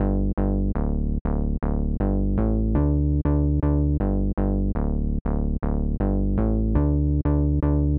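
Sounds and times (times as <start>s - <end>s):
nu disco bass line in D at 120 bpm: 0.0s - 7.9s.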